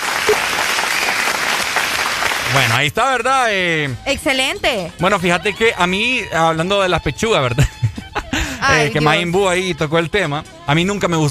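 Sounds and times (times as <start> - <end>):
applause: 0.0 - 2.9
speech: 2.5 - 7.8, 8.6 - 11.3
laughter: 7.3 - 9.3.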